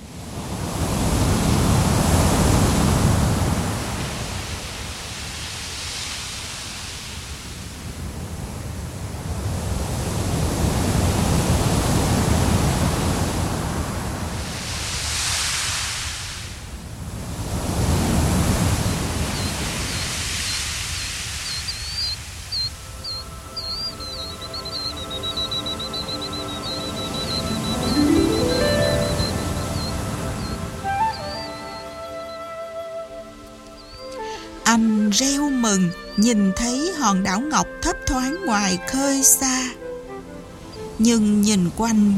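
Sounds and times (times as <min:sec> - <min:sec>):
waves of the East Sea washing against the shore: 0:00.0 - 0:32.0
thin high tonal sound: 0:23.2 - 0:32.1
speech: 0:34.8 - 0:39.8, 0:41.0 - 0:42.1.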